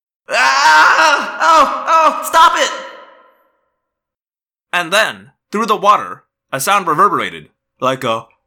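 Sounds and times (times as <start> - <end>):
person screaming in pain: 0.3 - 3.3
speech: 1.2 - 2.9, 4.7 - 8.3.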